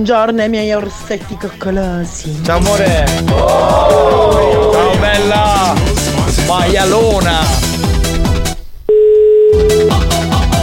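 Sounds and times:
speech: 0.0 - 5.9, 6.6 - 7.6
loud rhythmic music: 0.4 - 8.6, 9.6 - 10.6
phone call ringing tone beep: 8.9 - 10.0.

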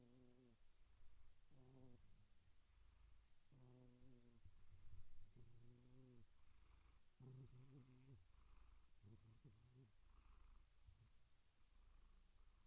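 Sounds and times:
domestic cat purring: 0.0 - 12.6.

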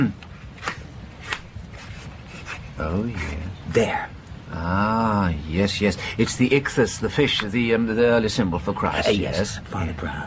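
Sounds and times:
speech: 0.0 - 0.2, 2.8 - 10.2
drawing a symbol by hand: 0.5 - 3.5.

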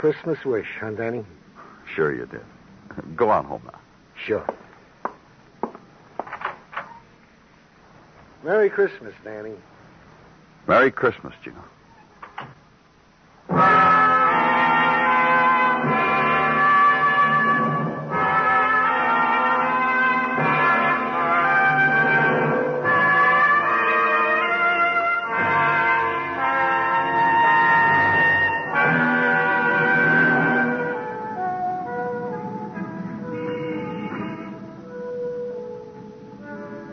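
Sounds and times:
speech: 0.0 - 4.6, 8.4 - 9.7, 10.6 - 11.8, 12.4 - 12.6
bells ringing on Broadway: 13.5 - 34.7
horns blowing on Broadway: 13.5 - 34.9.

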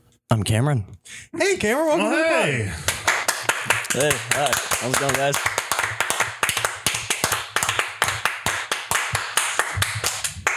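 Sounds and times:
speech: 0.3 - 2.9, 3.9 - 5.6
small hand clap: 2.9 - 10.5.

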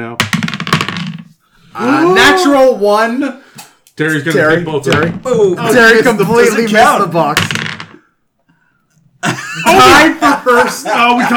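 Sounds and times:
dice being knocked: 0.2 - 1.3, 4.9 - 5.3, 7.3 - 8.0
speech: 1.8 - 3.3, 4.0 - 7.6, 9.2 - 11.3
laughter: 9.2 - 11.3.

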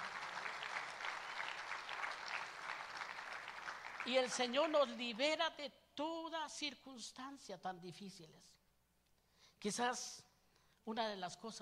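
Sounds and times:
audience applauding: 0.0 - 4.8
speech: 4.0 - 8.6, 9.6 - 11.6.

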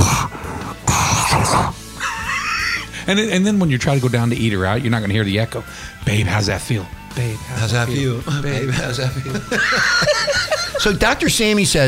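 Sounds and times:
voice imitating vaginal flatulence: 0.0 - 1.8
laughter: 2.0 - 2.9, 8.3 - 11.4
speech: 3.1 - 11.8.

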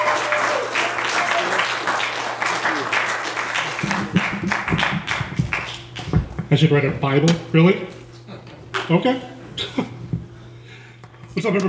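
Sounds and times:
voices and cheers: 0.0 - 3.8
crowd applause: 0.0 - 6.2
speech: 6.5 - 8.0, 8.9 - 9.3, 11.4 - 11.6.

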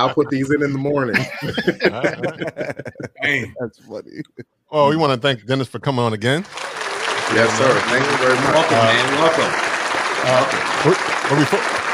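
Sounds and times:
laughter: 0.0 - 4.4, 6.6 - 11.5
speech: 0.0 - 11.8
hand clapping: 6.4 - 11.9.

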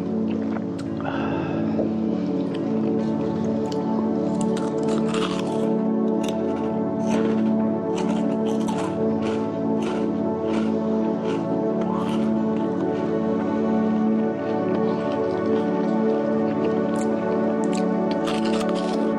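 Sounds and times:
steady low hum with layered droning tones: 0.0 - 19.1
eating Burger Rings with crisp crunches: 3.7 - 13.1, 16.4 - 19.1.

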